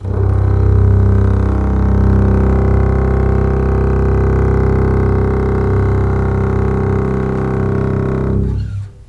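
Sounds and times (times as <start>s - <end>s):
string instruments: 0.0s - 9.0s.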